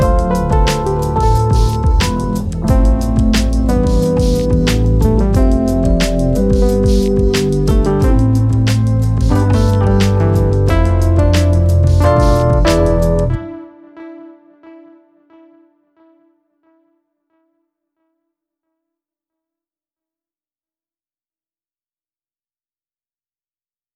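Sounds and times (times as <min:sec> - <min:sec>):
hip hop music: 0:00.0 - 0:14.9.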